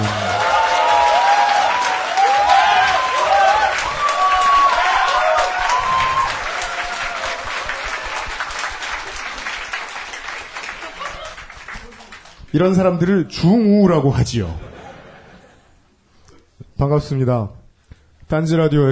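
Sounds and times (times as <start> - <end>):
people cheering: 0.0 - 12.2
audience applause: 0.0 - 12.5
laughter: 10.6 - 12.0, 14.5 - 15.8
speech: 12.6 - 14.7, 16.8 - 17.6, 18.3 - 18.8.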